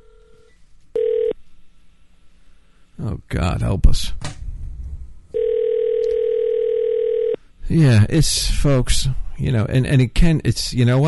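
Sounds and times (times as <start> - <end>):
telephone dial tone: 0.0 - 1.4, 5.4 - 7.4
speech: 3.0 - 4.3, 7.7 - 11.0
low rumble: 4.2 - 5.4.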